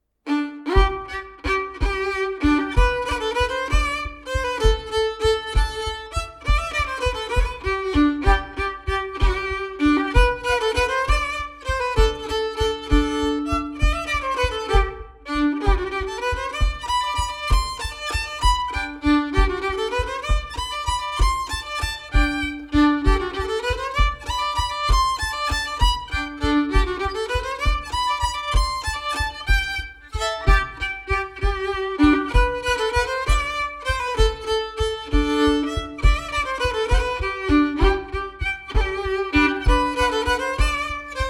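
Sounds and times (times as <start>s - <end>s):
bourree dance tune: 0.3s - 41.2s.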